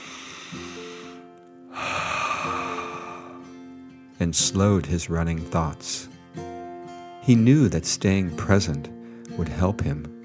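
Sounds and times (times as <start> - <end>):
deep breath in and out: 0.0 - 3.8
soft music: 0.0 - 10.2
speech: 4.2 - 6.2, 7.2 - 10.2.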